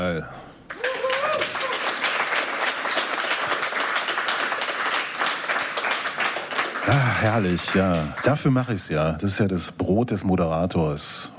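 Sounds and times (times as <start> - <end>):
speech: 0.2 - 0.4, 6.9 - 11.3
studio audience applause: 0.7 - 8.7.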